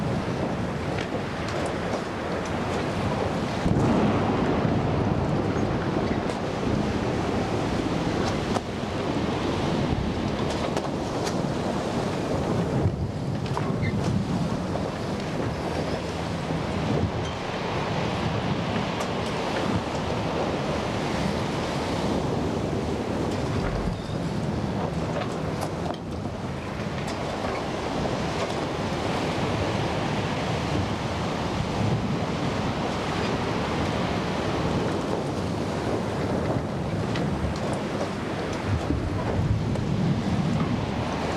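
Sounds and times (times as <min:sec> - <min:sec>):
sea storm ambience: 0:00.0 - 0:41.3.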